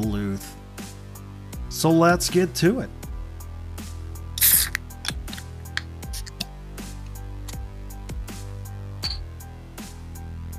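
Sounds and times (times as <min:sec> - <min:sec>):
speech: 0:01.8 - 0:03.0
Moosehead Rattler beer can cracking open: 0:04.4 - 0:06.4.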